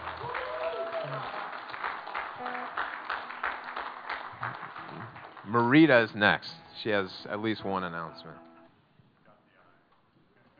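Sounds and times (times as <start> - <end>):
crowd clapping: 0.0 - 6.5
speech: 5.5 - 8.5
pitched tones: 6.1 - 8.7.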